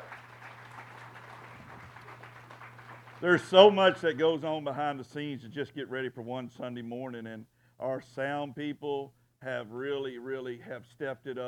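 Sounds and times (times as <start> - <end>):
audience applause: 0.0 - 3.8
low electrical hum: 0.0 - 11.4
speech: 3.2 - 11.4.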